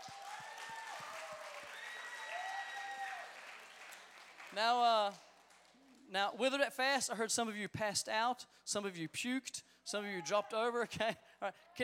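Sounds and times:
church audience applauding: 0.0 - 6.0
speech: 4.5 - 5.3, 6.1 - 11.8.

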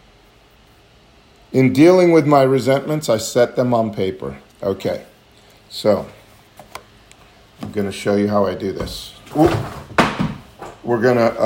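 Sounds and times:
speech: 1.5 - 5.1, 5.7 - 6.2, 7.7 - 9.8, 10.9 - 11.4
book dropping with a thump: 9.4 - 10.8.

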